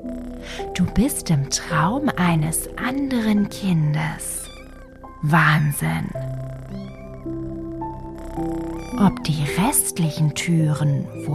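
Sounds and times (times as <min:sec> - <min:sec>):
speech: 0:00.0 - 0:04.4, 0:05.2 - 0:06.6, 0:08.4 - 0:11.3
steady tonal backing: 0:00.0 - 0:11.3
kittens meowing: 0:03.0 - 0:10.2.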